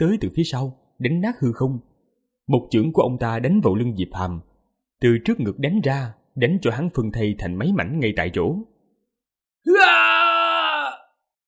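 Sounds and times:
speech: 0.0s - 1.9s, 2.5s - 8.7s, 9.6s - 10.3s
man's long anguished scream: 9.6s - 11.2s.

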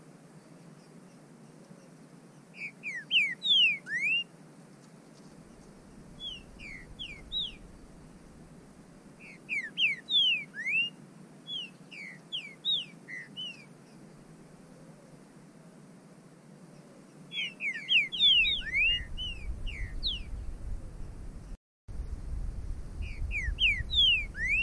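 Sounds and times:
bird whistling calls: 2.6s - 4.3s, 6.2s - 7.6s, 9.2s - 13.7s, 17.3s - 20.4s, 23.0s - 24.6s.

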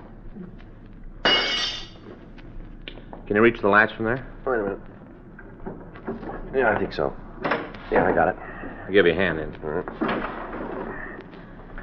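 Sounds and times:
glass breaking: 1.2s - 2.0s
speech: 3.3s - 5.0s, 6.5s - 7.2s, 7.9s - 10.4s.

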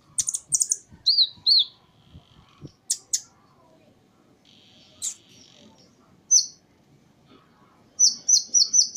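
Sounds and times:
small bird chirping and twittering: 0.0s - 3.4s, 4.4s - 6.6s, 8.0s - 8.9s.

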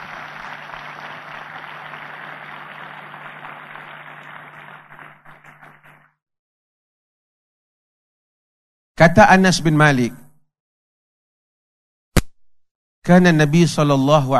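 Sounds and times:
audience applause: 0.0s - 6.1s
speech: 9.0s - 10.2s, 13.1s - 14.3s.

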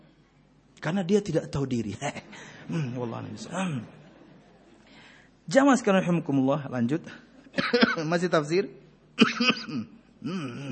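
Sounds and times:
speech: 0.8s - 4.0s, 5.5s - 10.7s
person coughing: 7.6s - 8.1s, 9.2s - 10.7s.

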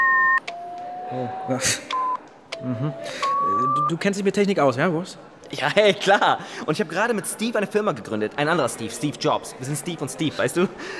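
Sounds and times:
two-note electronic beep from a self-built phone blue box: 0.0s - 3.9s
speech: 1.1s - 2.0s, 2.6s - 10.9s.

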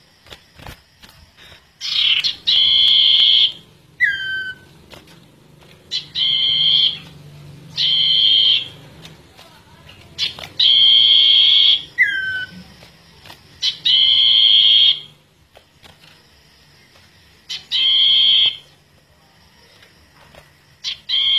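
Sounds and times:
bird song of long and slurred whistles: 1.8s - 4.7s, 5.9s - 7.1s, 7.7s - 8.8s, 10.2s - 12.6s, 13.6s - 15.2s, 17.5s - 18.7s, 20.8s - 21.3s.

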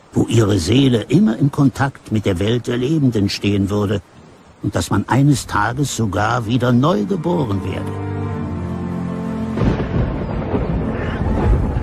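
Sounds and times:
speech: 0.2s - 8.1s
thunder rumbling in a violent storm: 9.2s - 11.8s.

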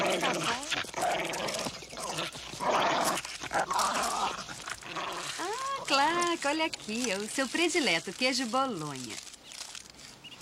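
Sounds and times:
dog growling low: 0.0s - 6.5s
dog whimpering in high wavering whines: 5.3s - 6.0s
speech: 6.5s - 9.3s.

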